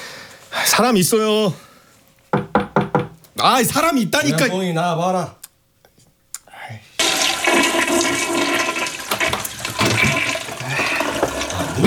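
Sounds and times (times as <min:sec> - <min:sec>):
speech: 0:00.6 - 0:01.7, 0:03.4 - 0:05.4
toilet flush: 0:07.0 - 0:11.8.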